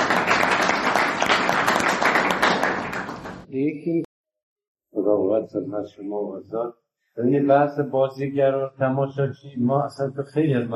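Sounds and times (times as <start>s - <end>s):
audience applause: 0.0s - 3.5s
speech: 3.6s - 4.1s, 5.3s - 10.7s.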